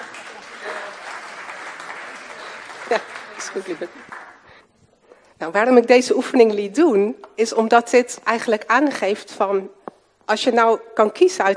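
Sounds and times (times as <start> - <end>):
applause: 0.0 - 4.7
speech: 2.9 - 4.2, 5.4 - 11.5.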